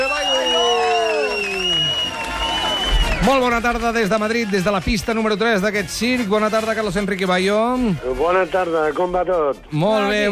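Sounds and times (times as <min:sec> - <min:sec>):
audience applause: 0:00.0 - 0:05.8
speech: 0:03.2 - 0:10.2.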